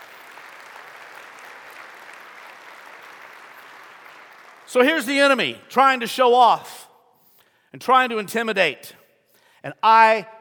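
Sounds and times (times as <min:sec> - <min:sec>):
audience clapping: 0:00.0 - 0:05.4
speech: 0:04.7 - 0:06.8, 0:07.7 - 0:09.0, 0:09.6 - 0:10.3.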